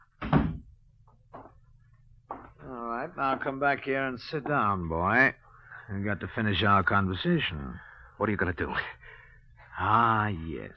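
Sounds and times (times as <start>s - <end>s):
low steady hum: 0.0s - 10.7s
door closing thud: 0.2s - 0.7s
speech: 3.2s - 9.0s, 9.8s - 10.7s.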